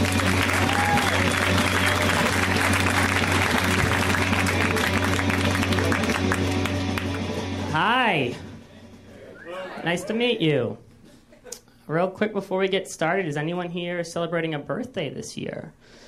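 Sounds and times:
comedy show audience applause welcoming a comedian from Boston: 0:00.0 - 0:07.7
speech: 0:09.8 - 0:10.8, 0:11.9 - 0:16.0.

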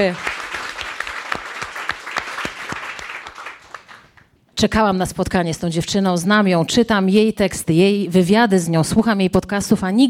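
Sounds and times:
speech: 0:00.0 - 0:00.3, 0:04.6 - 0:10.0
crowd applauding: 0:00.0 - 0:04.3.

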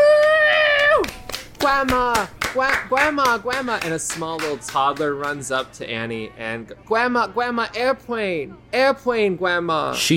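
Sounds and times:
family cheering with high-pitched voices: 0:00.0 - 0:01.2
family clapping: 0:00.0 - 0:05.8
speech: 0:01.7 - 0:10.1.

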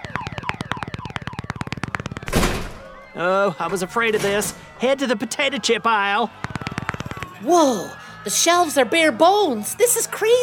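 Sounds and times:
shopping cart rolling into a car: 0:02.2 - 0:02.9
speech: 0:03.2 - 0:06.4, 0:07.4 - 0:10.4.

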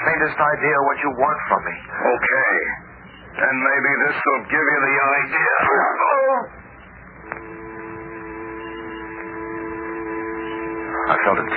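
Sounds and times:
speech: 0:00.2 - 0:06.6, 0:11.1 - 0:11.5
low dull buzzing: 0:06.5 - 0:11.5.

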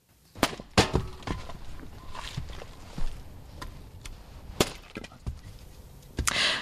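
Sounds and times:
chopping firewood with an axe: 0:00.4 - 0:02.8, 0:03.6 - 0:05.5.

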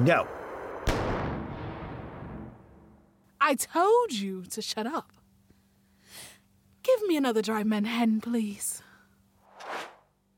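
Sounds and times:
speech: 0:00.0 - 0:00.4, 0:03.4 - 0:05.2, 0:06.9 - 0:08.8
gunshot in a radio drama: 0:00.8 - 0:02.6.

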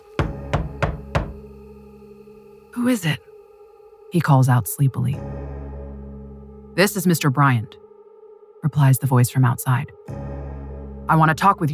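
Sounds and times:
bang on a wooden door: 0:00.2 - 0:01.5
speech: 0:02.8 - 0:03.3, 0:04.1 - 0:05.6, 0:06.8 - 0:07.8, 0:08.6 - 0:10.2, 0:11.1 - 0:11.7.

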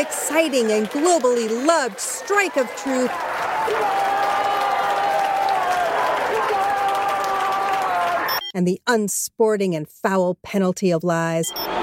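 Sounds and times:
speech: 0:00.0 - 0:04.1, 0:08.5 - 0:11.8
studio audience applause sound effect played by a robot on a kids' game show: 0:00.0 - 0:08.4.

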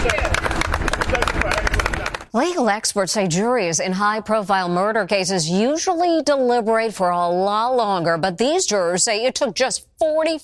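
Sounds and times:
crowd of bystanders applauding: 0:00.0 - 0:02.3
speech: 0:02.3 - 0:10.4.

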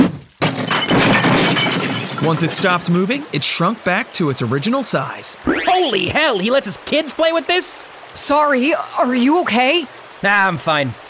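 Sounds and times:
hammer smashing a stone fountain: 0:00.0 - 0:02.4
water shooting out of a broken fountain: 0:00.4 - 0:11.0
speech: 0:02.2 - 0:11.0.

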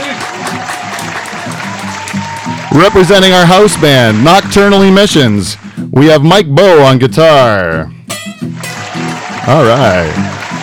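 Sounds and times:
live audience applause: 0:00.0 - 0:05.8, 0:08.4 - 0:10.6
speech: 0:02.8 - 0:08.0, 0:09.5 - 0:10.4.

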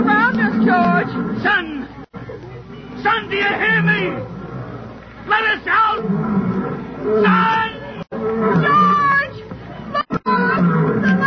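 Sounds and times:
lions roaring: 0:00.0 - 0:01.9, 0:03.5 - 0:09.2, 0:10.2 - 0:11.2
speech: 0:05.3 - 0:06.4.

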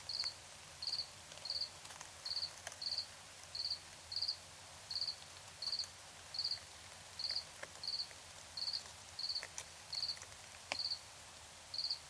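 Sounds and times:
cricket chirping: 0:00.1 - 0:01.7, 0:02.3 - 0:06.6, 0:07.2 - 0:10.2, 0:10.8 - 0:11.0, 0:11.7 - 0:12.0.

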